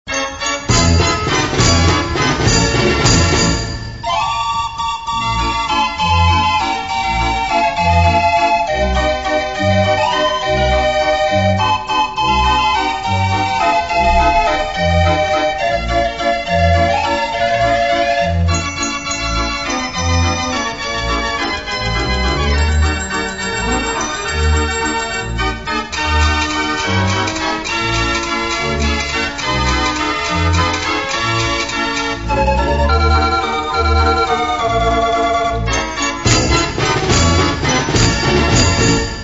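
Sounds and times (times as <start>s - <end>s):
Dutch street barrel organ playing: 0.1s - 39.2s.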